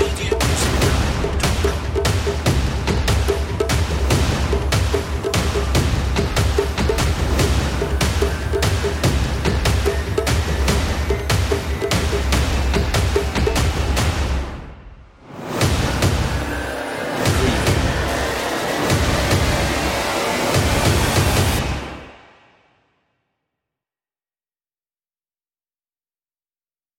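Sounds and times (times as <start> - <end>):
cyber ritual drums: 0.0 - 14.8, 15.4 - 22.1.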